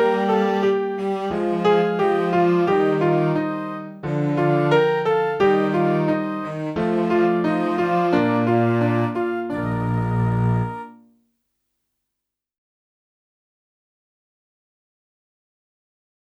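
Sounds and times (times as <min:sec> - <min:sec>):
saxophone: 0:00.0 - 0:11.0.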